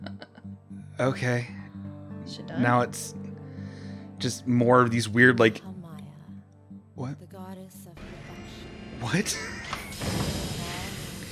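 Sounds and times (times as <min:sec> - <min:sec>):
speech: 0:01.0 - 0:01.6, 0:02.3 - 0:03.2, 0:04.2 - 0:05.7, 0:09.0 - 0:10.2
door opening: 0:08.1 - 0:11.3.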